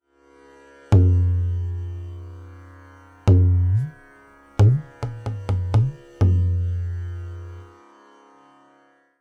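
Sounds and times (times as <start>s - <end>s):
tabla bol syllable Gi: 0.9s - 7.6s.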